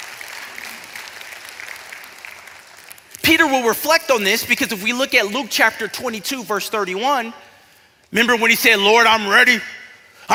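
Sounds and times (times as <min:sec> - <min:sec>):
church congregation clapping during a sermon: 0:00.0 - 0:04.6
speech: 0:03.3 - 0:07.5, 0:08.1 - 0:10.3.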